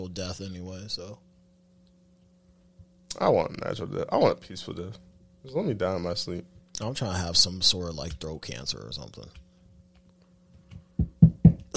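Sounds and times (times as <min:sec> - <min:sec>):
speech: 0:00.0 - 0:01.3, 0:03.1 - 0:09.4
knocking on wood: 0:10.7 - 0:11.7.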